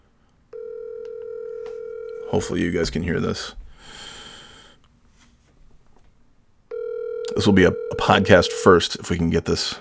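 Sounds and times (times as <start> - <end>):
faint noise: 0.0 - 9.7
ringback tone on an outgoing telephone call: 0.5 - 2.5, 6.7 - 9.0
speech: 2.3 - 4.0, 7.4 - 9.7.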